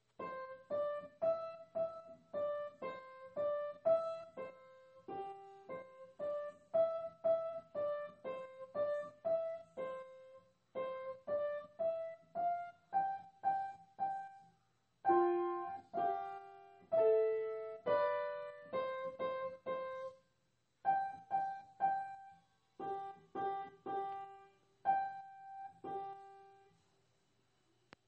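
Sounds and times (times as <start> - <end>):
upright piano playing: 0.2 - 14.4, 15.1 - 20.2, 20.9 - 26.6.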